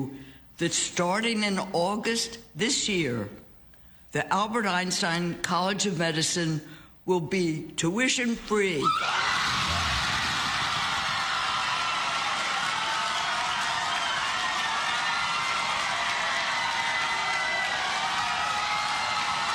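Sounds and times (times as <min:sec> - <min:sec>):
speech: 0:00.0 - 0:03.4, 0:04.1 - 0:09.4
auditorium crowd cheering: 0:08.8 - 0:19.5.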